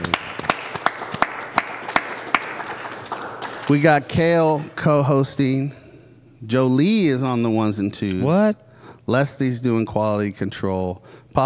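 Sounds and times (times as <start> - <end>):
round of applause: 0.0 - 4.4
speech: 3.7 - 5.8, 6.4 - 11.4.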